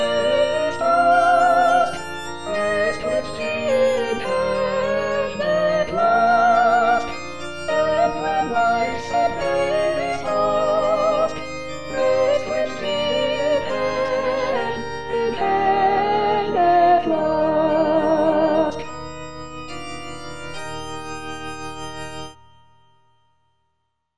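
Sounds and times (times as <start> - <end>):
soprano singing: 0.0 - 18.9.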